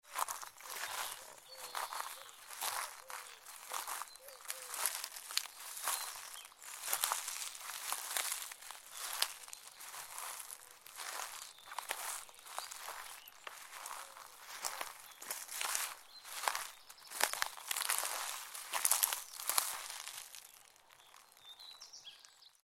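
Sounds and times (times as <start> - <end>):
autumn leaves rustling: 0.1 - 21.4.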